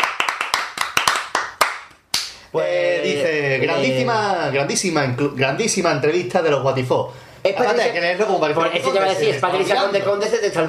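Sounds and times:
sparse handclaps for a radio programme guest: 0.0s - 2.4s
speech: 2.5s - 10.6s.

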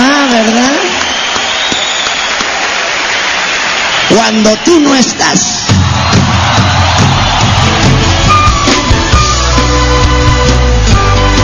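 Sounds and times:
audience applause: 0.0s - 11.4s
speech: 4.2s - 5.6s.

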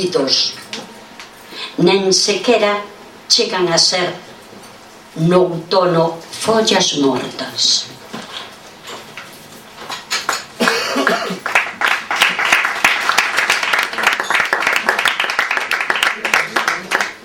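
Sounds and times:
speech: 0.0s - 0.6s, 1.6s - 4.3s, 5.2s - 8.0s
audience applause: 10.3s - 17.2s.

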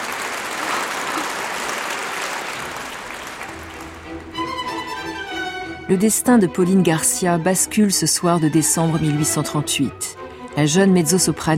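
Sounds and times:
opera audience applauding a standing ovation in Paris: 0.0s - 5.3s
speech: 5.9s - 11.5s.

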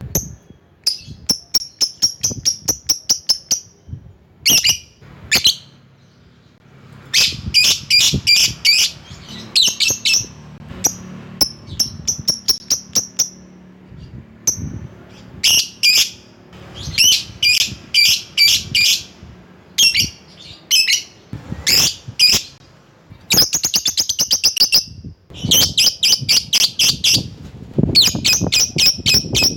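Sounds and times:
lovebird chirping: 0.0s - 29.5s.

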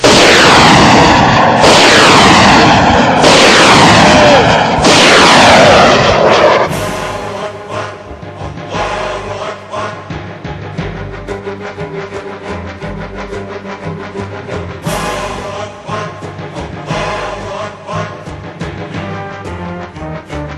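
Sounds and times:
weapon being fired with booming bursts and trailing whoosh: 0.0s - 7.6s.

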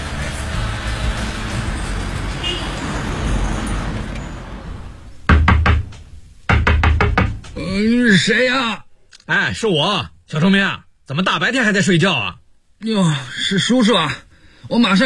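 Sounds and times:
low rumble of traffic-like noise: 0.0s - 8.1s
firm rapid knocking on a door: 5.3s - 7.6s
speech: 8.2s - 15.0s.

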